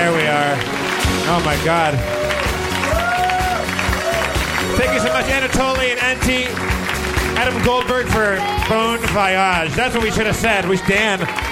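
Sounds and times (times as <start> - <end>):
audience clapping: 0.0 - 11.5
speech: 1.3 - 2.2, 4.8 - 6.7, 7.4 - 11.5.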